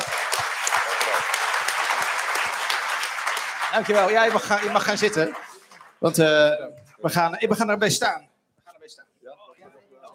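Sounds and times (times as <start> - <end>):
audience applause: 0.0 - 6.2
speech: 3.7 - 5.4, 6.0 - 8.3.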